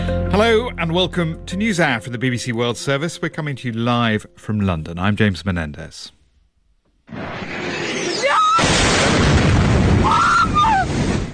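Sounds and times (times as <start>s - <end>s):
speech: 0.4s - 6.2s
explosion in Kyiv during air attack: 7.1s - 11.3s.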